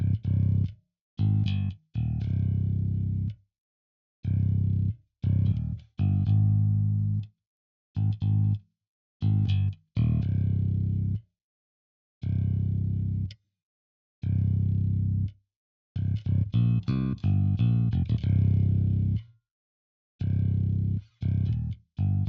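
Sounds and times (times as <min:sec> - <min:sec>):
bass: 0:00.0 - 0:03.4, 0:04.2 - 0:07.3, 0:08.0 - 0:11.3, 0:12.2 - 0:13.4, 0:14.2 - 0:15.4, 0:16.0 - 0:19.3, 0:20.2 - 0:22.2.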